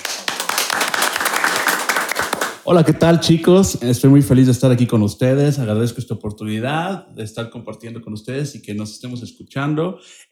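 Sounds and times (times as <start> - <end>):
audience applause: 0.0 - 3.7
speech: 2.7 - 10.3.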